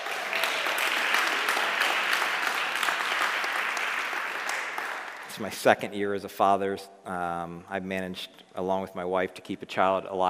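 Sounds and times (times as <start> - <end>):
crowd clapping: 0.0 - 5.7
speech: 5.4 - 10.2.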